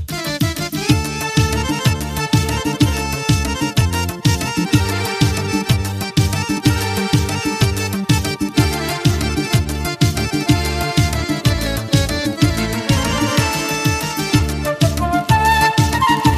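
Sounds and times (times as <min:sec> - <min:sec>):
accordion with flute register: 0:00.1 - 0:16.3.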